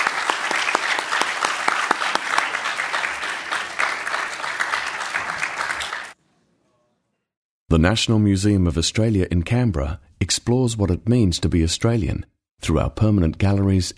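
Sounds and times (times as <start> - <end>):
audience round of applause: 0.0 - 6.2
speech: 7.7 - 13.9.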